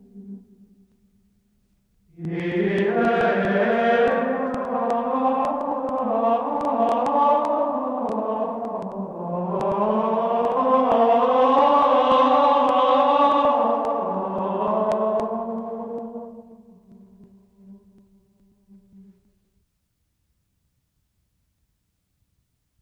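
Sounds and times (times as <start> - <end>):
Gregorian chant: 2.1 - 18.2.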